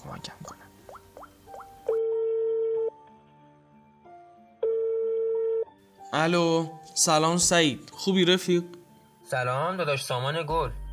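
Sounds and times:
speech: 0:00.2 - 0:00.5, 0:06.2 - 0:10.8
telephone ringing tones: 0:02.0 - 0:03.0, 0:04.6 - 0:05.7.

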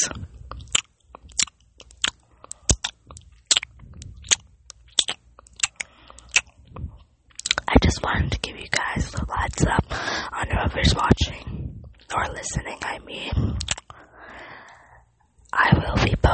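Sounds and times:
ASMR eating and mouth noises: 0:00.0 - 0:09.8, 0:10.9 - 0:14.1
speech: 0:08.0 - 0:13.7.

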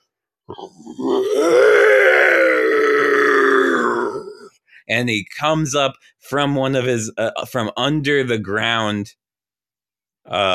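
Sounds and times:
speech: 0:00.5 - 0:02.2, 0:04.8 - 0:09.2, 0:10.3 - 0:10.5
human voice imitating a T-Rex on the hunt with a growling roar: 0:00.5 - 0:04.5, 0:10.3 - 0:10.5.

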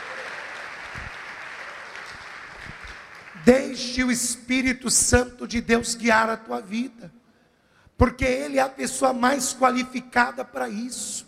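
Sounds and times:
audience applause: 0:00.0 - 0:03.5
speech: 0:03.4 - 0:07.2, 0:08.0 - 0:11.2.

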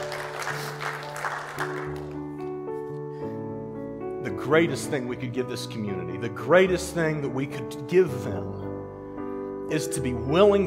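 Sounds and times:
audience clapping hands: 0:00.0 - 0:02.5
speech: 0:04.5 - 0:08.6, 0:09.7 - 0:10.6.

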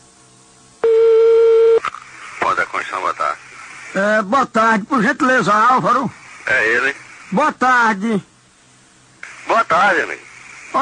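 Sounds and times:
telephone ringback tone: 0:00.8 - 0:01.8
faint line hiss: 0:01.9 - 0:10.8
speech: 0:04.0 - 0:08.3, 0:09.5 - 0:10.8.

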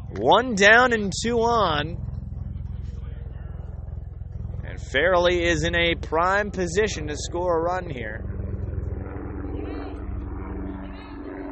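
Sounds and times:
Black Hawk helicopter flying overhead: 0:00.0 - 0:11.4
speech: 0:00.1 - 0:02.1, 0:04.8 - 0:08.3
faint murmur: 0:02.0 - 0:04.9, 0:08.4 - 0:11.4.

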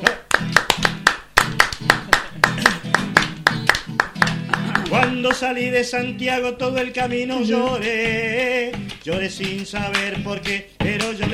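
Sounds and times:
lively folk music: 0:00.0 - 0:11.3
rhythmic hand clapping: 0:00.0 - 0:11.3
speech: 0:05.0 - 0:11.3.

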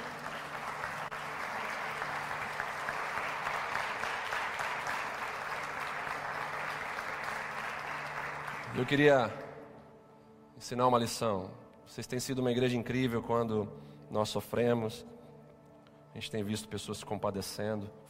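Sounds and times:
audience applause: 0:00.0 - 0:09.1
speech: 0:08.8 - 0:09.4, 0:10.6 - 0:15.1, 0:16.2 - 0:18.0.

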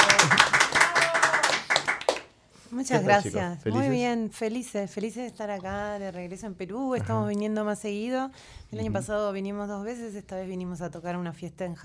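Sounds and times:
small group clapping to welcome guest band members: 0:00.0 - 0:02.3
speech: 0:02.8 - 0:11.8.

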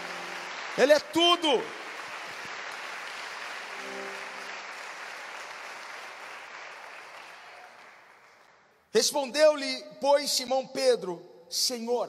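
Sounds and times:
audience applause: 0:00.0 - 0:08.5
speech: 0:00.8 - 0:01.8, 0:08.9 - 0:12.0.

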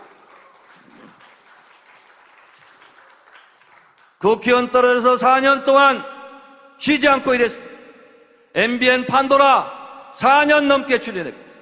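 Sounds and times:
audience applause: 0:00.0 - 0:04.2
speech: 0:04.2 - 0:06.1, 0:06.8 - 0:07.7, 0:08.6 - 0:11.4.

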